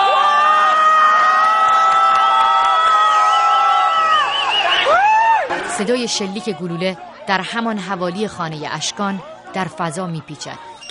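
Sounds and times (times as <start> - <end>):
crowd booing and jeering: 0.0 - 10.8
speech: 5.8 - 10.7.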